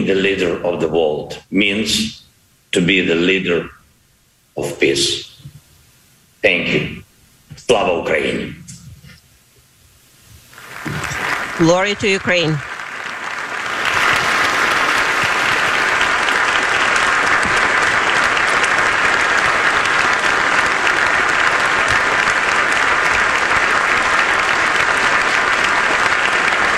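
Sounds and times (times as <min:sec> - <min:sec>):
speech: 0:00.0 - 0:03.8, 0:04.6 - 0:05.3, 0:06.4 - 0:07.0, 0:07.6 - 0:08.6, 0:11.6 - 0:12.7
thunderous unanimous applause for the speech from Volodymyr Zelensky: 0:10.6 - 0:26.7.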